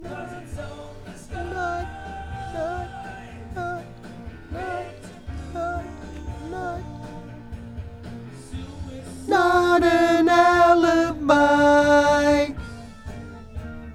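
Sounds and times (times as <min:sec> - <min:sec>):
backing vocals: 0:00.0 - 0:13.0.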